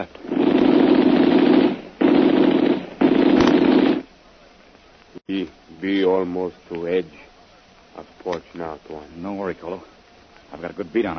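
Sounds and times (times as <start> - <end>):
rapid gunfire radio drama sound effect: 0.2 - 4.1
speech: 5.3 - 7.3, 8.0 - 11.1.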